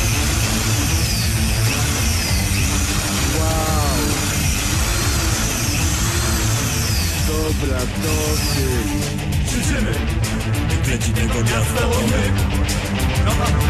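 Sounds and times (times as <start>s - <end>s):
hammer drill running in impact mode: 0.0s - 10.7s
speech: 10.9s - 13.6s.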